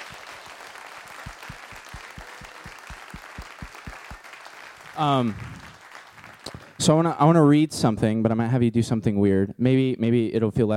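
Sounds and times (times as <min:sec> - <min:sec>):
audience applause: 0:00.0 - 0:07.2
speech: 0:05.0 - 0:05.5, 0:06.8 - 0:10.7.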